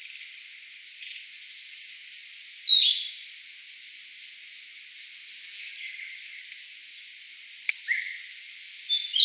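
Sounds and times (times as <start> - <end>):
Sakhalin leaf warbler singing short thin high phrases: 2.4 - 9.2.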